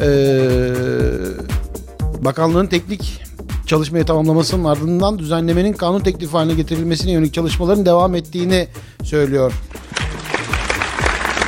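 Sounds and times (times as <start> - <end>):
speech: 0.0 - 0.5, 2.2 - 9.7
applause sound effect: 9.7 - 11.4.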